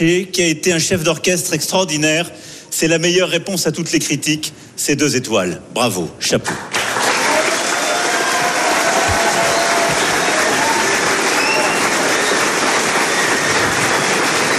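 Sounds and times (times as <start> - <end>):
speech: 0.0 - 6.8
applause in a reception hall: 6.4 - 14.5.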